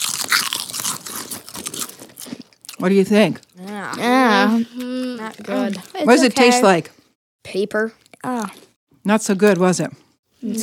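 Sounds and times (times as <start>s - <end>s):
crunching potato chips: 0.0s - 3.6s
speech: 2.8s - 10.6s.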